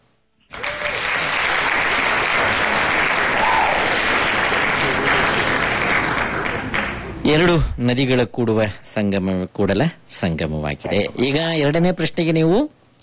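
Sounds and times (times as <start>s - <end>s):
audience applause on a Kannada quiz show: 0.5s - 7.2s
speech: 7.3s - 12.8s.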